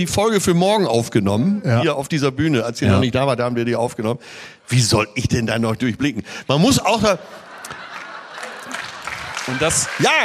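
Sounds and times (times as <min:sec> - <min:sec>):
speech: 0:00.0 - 0:07.8, 0:09.5 - 0:10.2
laughter: 0:06.7 - 0:10.2
whole audience applauding: 0:07.6 - 0:10.2.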